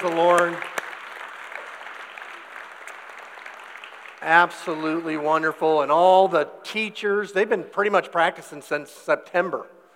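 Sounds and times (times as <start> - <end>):
speech: 0.0 - 0.7, 4.2 - 9.8
crowd applause: 0.0 - 5.2.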